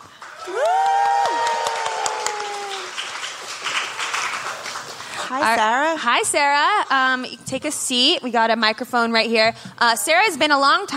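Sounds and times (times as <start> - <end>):
audience applause: 0.0 - 5.5
whoops and cheers: 0.3 - 3.0
speech: 5.3 - 10.9.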